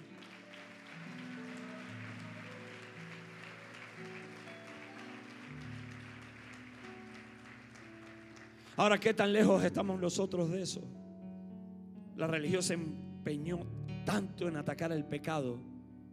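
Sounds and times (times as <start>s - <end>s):
audience applause: 0.0s - 9.4s
speech: 8.8s - 11.0s, 12.2s - 15.7s.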